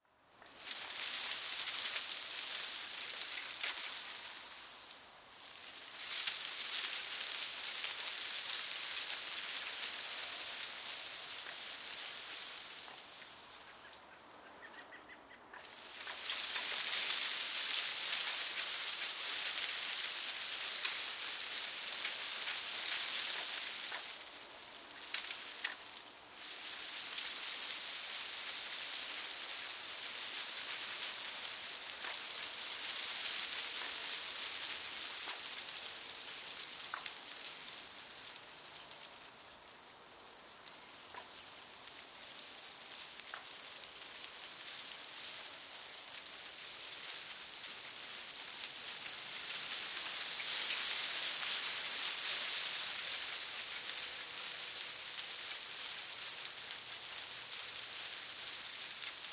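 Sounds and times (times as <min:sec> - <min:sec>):
small leaves rustling in wind: 0:00.0 - 0:59.3.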